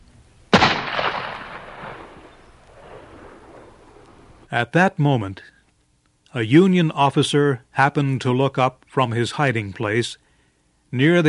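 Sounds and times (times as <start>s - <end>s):
gunshot as the trigger of a gun is pulled: 0.5s - 3.8s
speech: 4.5s - 5.6s, 6.3s - 10.2s, 10.9s - 11.2s.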